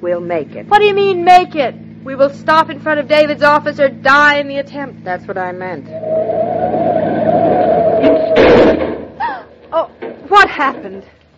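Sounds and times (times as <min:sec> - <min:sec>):
speech: 0:00.0 - 0:07.0, 0:09.8 - 0:11.2
car engine whining: 0:05.7 - 0:09.1.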